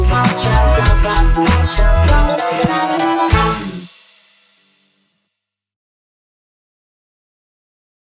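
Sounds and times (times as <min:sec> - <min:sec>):
robotic gypsy jazz: 0:00.0 - 0:03.9.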